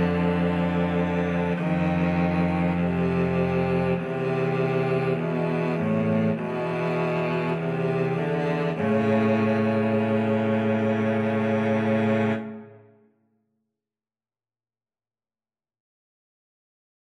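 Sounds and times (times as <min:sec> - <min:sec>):
cello trio playing: 0:00.0 - 0:12.8.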